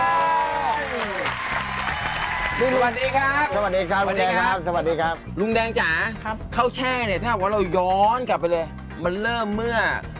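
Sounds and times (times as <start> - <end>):
loud crowd applause welcoming a guest: 0.0 - 3.8
speech: 2.6 - 10.1.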